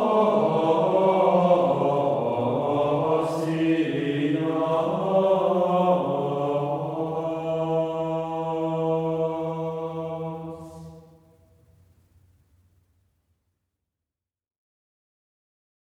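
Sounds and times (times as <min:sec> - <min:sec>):
two-voice chant: 0:00.0 - 0:11.4.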